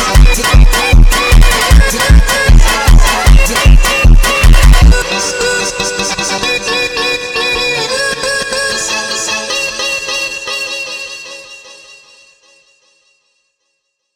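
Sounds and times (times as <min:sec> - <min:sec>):
sped up funk music: 0:00.0 - 0:10.0.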